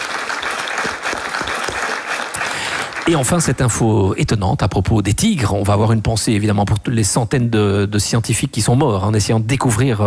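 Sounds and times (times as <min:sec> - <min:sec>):
audience applause: 0:00.0 - 0:03.8
speech: 0:03.1 - 0:10.0.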